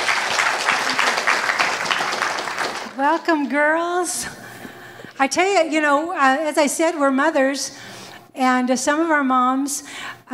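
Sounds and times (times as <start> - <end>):
audience clapping to welcome panel: 0.0 - 3.5
speech: 3.0 - 4.4, 5.2 - 10.3.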